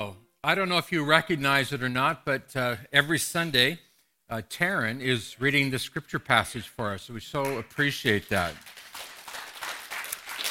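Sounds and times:
speech: 0.0s - 8.7s
audience clapping: 7.4s - 10.5s.

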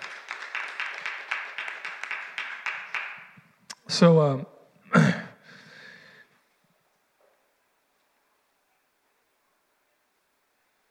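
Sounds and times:
audience clapping: 0.0s - 3.5s
speech: 3.9s - 5.0s.

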